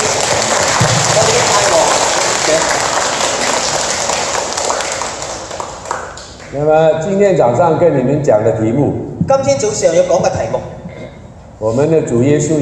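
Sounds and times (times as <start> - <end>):
audience applause: 0.0 - 6.5
speech: 6.5 - 10.8, 11.6 - 12.5.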